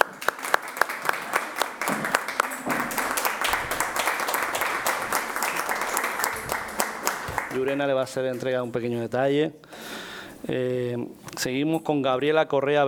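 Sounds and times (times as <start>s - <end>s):
audience applause: 0.0s - 7.9s
speech: 7.6s - 12.8s.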